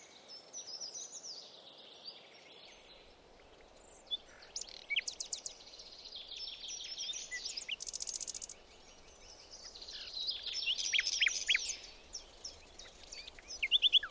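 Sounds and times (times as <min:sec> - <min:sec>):
bird singing short rising slurred notes: 0:04.1 - 0:14.0.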